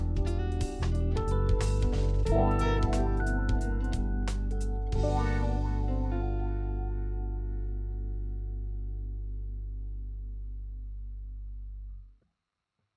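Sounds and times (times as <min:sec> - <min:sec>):
wah guitar playing slow triplets for smooth jazz: 0:00.0 - 0:09.4.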